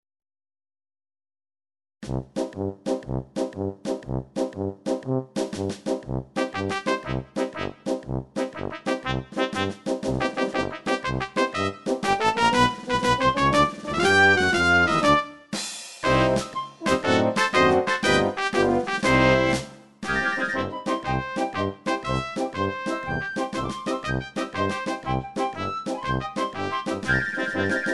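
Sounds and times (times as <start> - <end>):
march music in six-eight time: 2.0 - 27.9.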